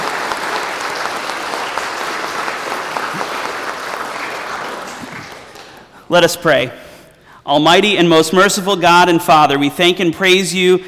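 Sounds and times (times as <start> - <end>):
audience applause: 0.0 - 5.9
speech: 6.1 - 6.8, 7.4 - 10.8.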